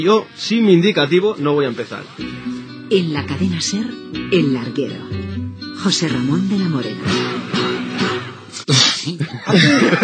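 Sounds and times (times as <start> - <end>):
speech: 0.0 - 7.5, 8.6 - 10.0
sneeze in a radio sports newsroom: 8.6 - 9.2
voices and chuckling in a radio sports newsroom: 9.0 - 10.0.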